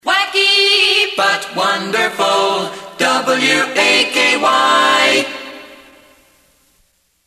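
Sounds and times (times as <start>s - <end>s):
a cappella singing: 0.0s - 6.2s.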